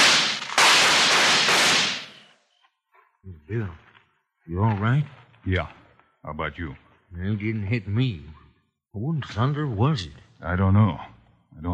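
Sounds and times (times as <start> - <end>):
gunshots: 0.0 - 2.4
speech: 3.5 - 3.9, 4.5 - 8.4, 9.0 - 11.7.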